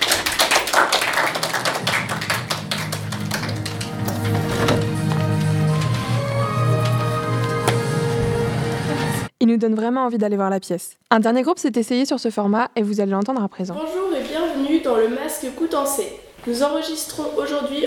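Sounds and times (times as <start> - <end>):
audience applause: 0.0 - 9.3
speech: 9.5 - 17.8.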